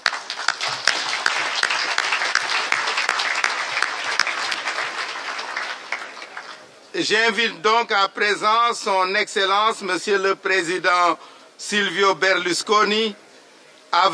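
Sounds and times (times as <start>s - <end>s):
audience applause: 0.0s - 6.7s
speech: 7.0s - 13.2s, 13.9s - 14.1s.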